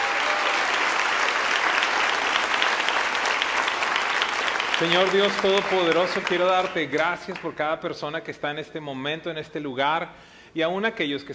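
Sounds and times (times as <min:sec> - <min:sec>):
audience applause: 0:00.0 - 0:07.4
speech: 0:04.8 - 0:11.3.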